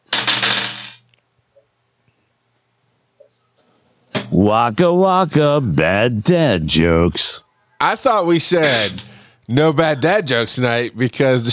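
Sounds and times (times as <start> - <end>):
dice being rolled: 0.1 - 1.2
speech: 4.4 - 11.5.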